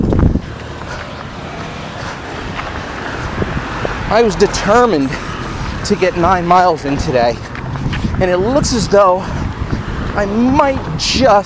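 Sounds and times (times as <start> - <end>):
passing road traffic: 0.0 - 11.4
speech: 4.1 - 9.4, 10.2 - 11.4.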